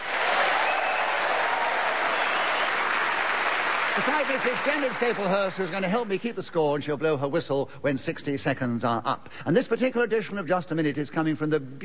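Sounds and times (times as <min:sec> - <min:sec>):
audience applause: 0:00.0 - 0:06.1
speech: 0:04.0 - 0:11.8.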